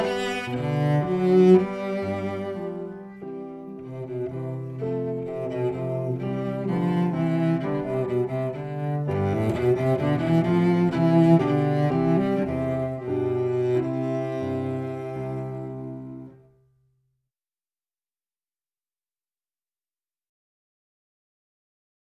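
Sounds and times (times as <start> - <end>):
cello playing a minuet: 0.0 - 16.5.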